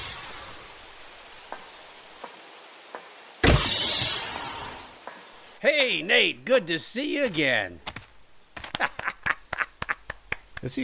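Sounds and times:
rushing hiss of air: 0.0 - 1.0, 3.4 - 5.0
steady hiss: 0.0 - 10.8
speech: 5.6 - 7.9, 8.8 - 9.0, 10.6 - 10.8.

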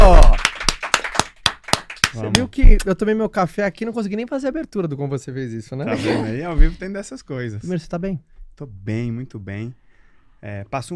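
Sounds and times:
crisp hand claps of applause: 0.0 - 2.9
speech: 2.2 - 9.8, 10.4 - 10.9.

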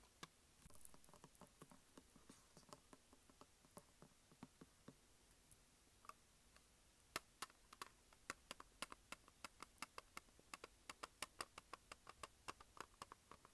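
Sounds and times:
fingertips tapping and scratching on a plastic case: 0.8 - 5.0, 7.2 - 13.5.

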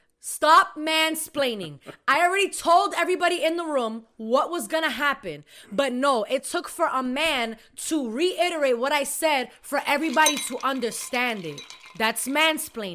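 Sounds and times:
speech: 0.2 - 12.9
spoon clinking against a cup while making tea: 10.1 - 12.3.

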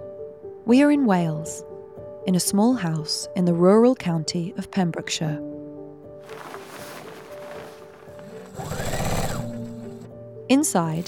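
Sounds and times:
speech: 0.7 - 5.5, 10.5 - 11.0
sewing machine running as fabric is fed through at a dining table in Pembrokeshire, Wales: 8.2 - 10.1.

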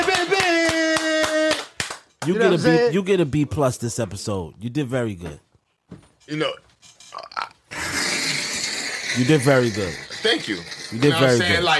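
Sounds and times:
hand clapping: 0.0 - 2.5
speech: 2.3 - 7.3, 9.2 - 11.7.

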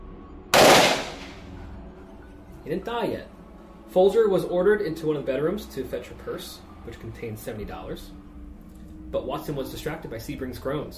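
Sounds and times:
gunshot sound effect: 0.6 - 1.5
speech: 2.6 - 8.2, 9.1 - 10.9.

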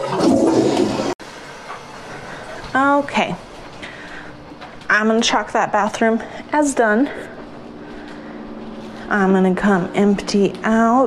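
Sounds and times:
toilet flushing: 0.0 - 3.3
speech: 2.8 - 3.5, 5.0 - 7.3, 9.1 - 11.0.

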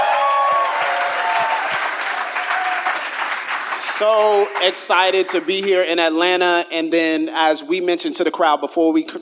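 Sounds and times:
cheers and whoops: 0.0 - 3.1
crowd applauding: 0.0 - 6.2
speech: 4.0 - 9.2.

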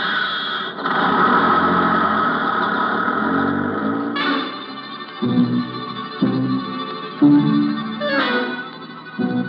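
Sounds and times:
dinky little sightseeing bus driving away: 0.8 - 9.4.

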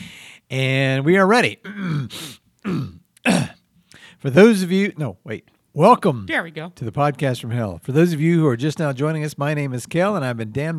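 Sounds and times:
speech: 0.5 - 3.4, 4.2 - 10.7
harsh raspy coughs: 1.7 - 3.6.

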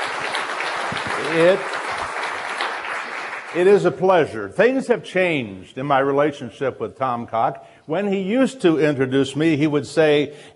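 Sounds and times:
audience applause welcoming a guest onto a show: 0.0 - 3.8
speech: 1.2 - 1.8, 3.6 - 10.5.

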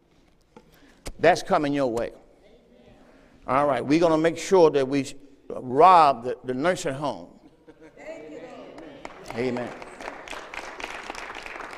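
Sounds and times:
speech: 1.2 - 2.2, 3.4 - 7.4, 9.3 - 9.8
crowd clapping: 8.7 - 11.7.

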